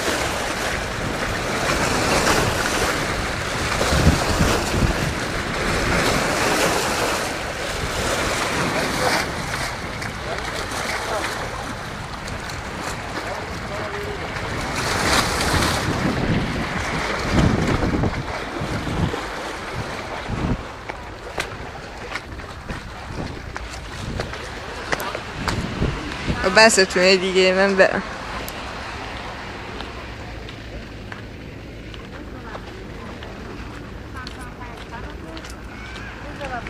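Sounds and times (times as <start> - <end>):
ocean waves breaking around a boat: 0.0 - 36.6
wind roaring: 0.0 - 36.6
speech: 26.6 - 28.2.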